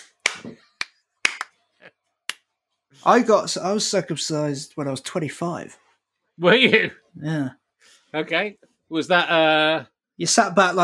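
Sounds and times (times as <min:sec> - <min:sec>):
hands clapping to swat a fly: 0:00.0 - 0:01.6
speech: 0:03.0 - 0:05.8, 0:06.4 - 0:10.8.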